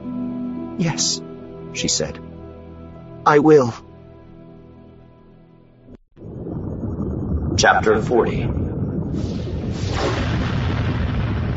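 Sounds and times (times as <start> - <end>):
speech: 0.8 - 2.3, 3.2 - 3.9, 7.6 - 10.2
turbolaser blast: 6.2 - 11.5
whooshing burst: 6.2 - 11.5.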